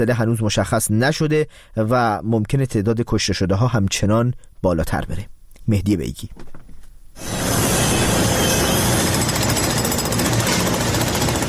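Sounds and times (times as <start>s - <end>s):
speech: 0.0s - 6.6s
rescue workers' machinery and tools drilling: 7.2s - 11.4s.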